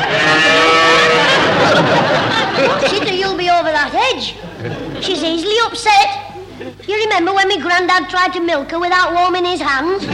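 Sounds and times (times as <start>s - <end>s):
cow mooing: 0.0s - 1.5s
laughter: 0.0s - 3.4s, 4.3s - 5.2s, 6.3s - 6.9s, 10.0s - 10.1s
speech: 4.2s - 10.1s.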